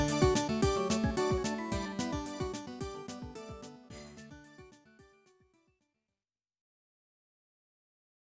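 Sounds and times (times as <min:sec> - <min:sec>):
wedding march music: 0:00.0 - 0:03.9.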